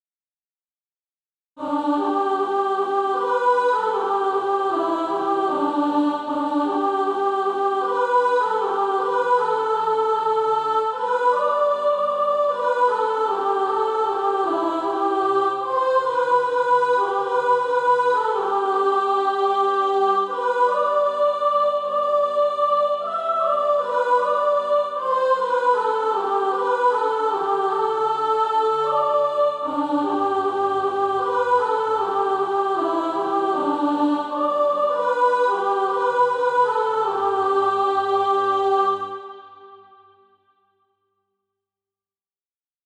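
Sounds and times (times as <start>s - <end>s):
soprano singing practice music: 1.6s - 39.8s.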